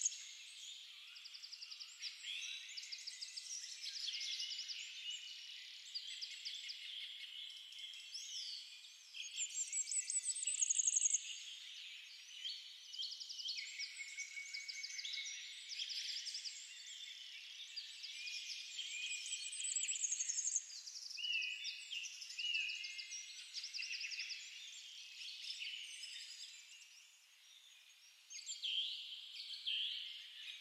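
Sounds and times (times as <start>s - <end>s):
forest birdsong: 0.0s - 30.5s.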